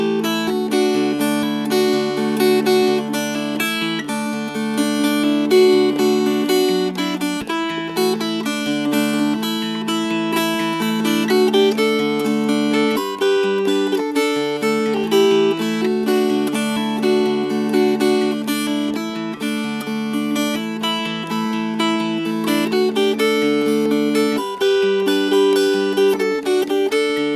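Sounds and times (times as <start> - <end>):
fingerpicked dulcimer: 0.0 - 27.3.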